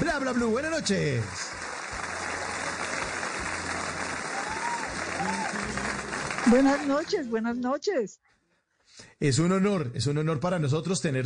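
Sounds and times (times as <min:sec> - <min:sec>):
loud applause: 0:00.0 - 0:07.3
speech: 0:00.2 - 0:01.6, 0:06.5 - 0:11.2.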